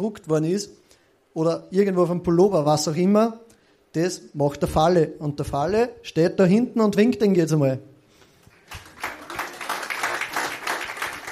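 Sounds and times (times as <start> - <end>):
speech: 0.0 - 0.8, 1.4 - 7.9
audience applause: 8.6 - 11.2.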